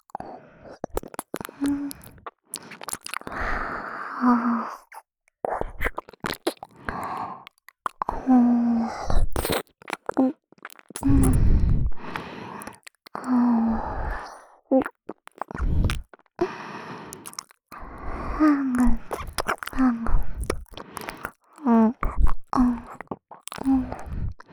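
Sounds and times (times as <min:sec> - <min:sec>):
person making mouth sounds in the left ear, ASMR: 0:00.9 - 0:03.5, 0:05.5 - 0:24.5.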